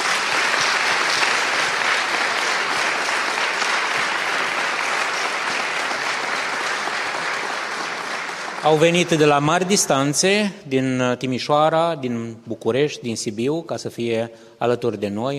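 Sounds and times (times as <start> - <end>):
audience applause: 0.0 - 10.2
speech: 8.6 - 15.3.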